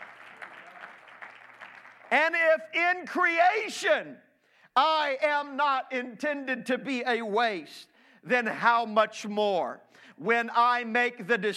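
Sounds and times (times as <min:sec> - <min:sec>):
audience clapping hands: 0:00.0 - 0:02.4
speech: 0:02.1 - 0:11.5.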